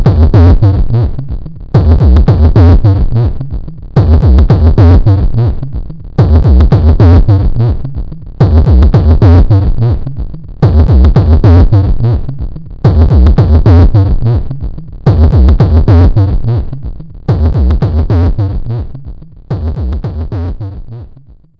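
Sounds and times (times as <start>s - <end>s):
drop drum loop: 0.0s - 21.5s.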